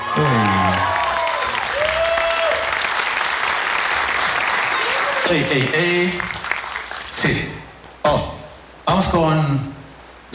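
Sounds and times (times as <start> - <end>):
studio audience applause: 0.0 - 7.2
speech: 0.2 - 1.0, 5.3 - 6.4, 7.2 - 8.3, 8.9 - 9.7.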